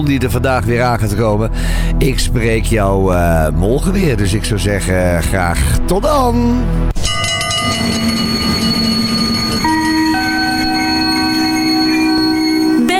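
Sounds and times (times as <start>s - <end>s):
speech: 0.0s - 8.5s
train rolling into a station: 7.1s - 12.9s
squealing train wheels and brakes: 7.6s - 12.9s.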